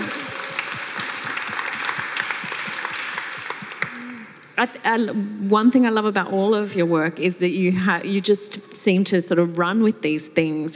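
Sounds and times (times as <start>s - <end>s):
audience applause: 0.0s - 4.1s
speech: 4.6s - 10.7s.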